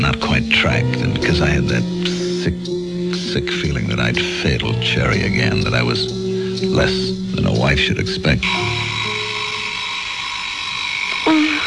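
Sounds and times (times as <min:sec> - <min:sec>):
speech: 0:00.0 - 0:09.0
alarm clock buzzing: 0:08.4 - 0:11.6.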